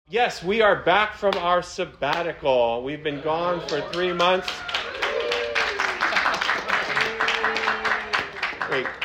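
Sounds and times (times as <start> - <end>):
speech: 0.1 - 4.8, 8.7 - 9.0
audience clapping: 3.6 - 9.0.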